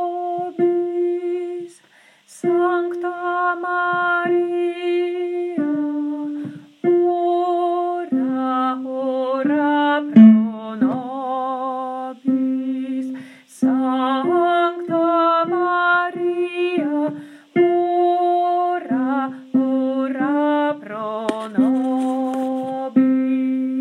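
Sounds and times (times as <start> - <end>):
contralto singing: 0.0 - 23.7.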